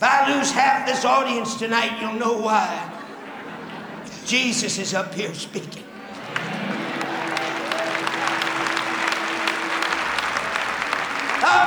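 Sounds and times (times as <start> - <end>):
faint murmur of voices: 0.0 - 11.6
speech: 0.4 - 3.0, 4.3 - 5.9
laughter: 2.4 - 11.6
crowd clapping: 5.8 - 11.6.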